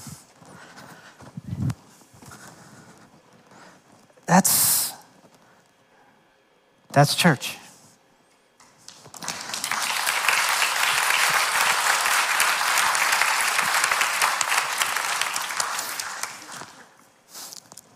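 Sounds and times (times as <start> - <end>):
speech: 4.4 - 4.6, 7.0 - 7.6
audience clapping: 8.6 - 17.0.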